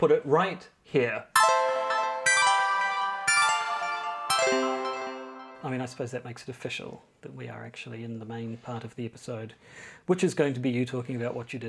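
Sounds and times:
speech: 0.0 - 1.4, 5.6 - 11.6
bell-like chime: 1.4 - 5.7.

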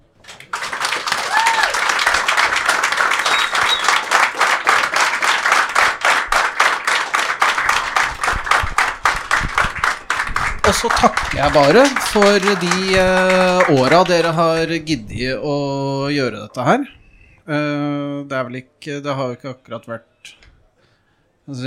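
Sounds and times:
audience applause: 0.0 - 14.8
speech: 10.8 - 20.4, 21.5 - 21.6.

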